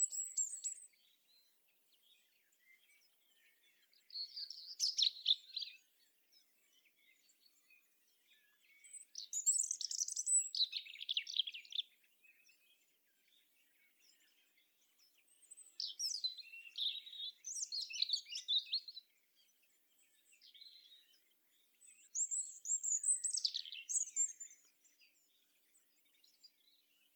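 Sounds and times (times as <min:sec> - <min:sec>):
European robin singing: 0:00.0 - 0:27.1.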